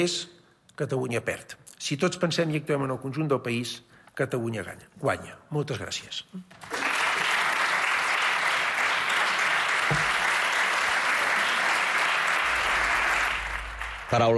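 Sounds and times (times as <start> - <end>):
speech: 0.0 - 6.8, 14.1 - 14.3
parliamentary applause from the benches: 6.6 - 14.3.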